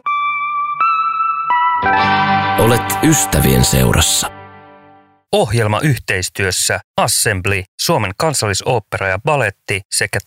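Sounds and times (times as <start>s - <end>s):
song playing: 0.0s - 5.2s
speech: 1.8s - 4.4s, 5.3s - 10.2s.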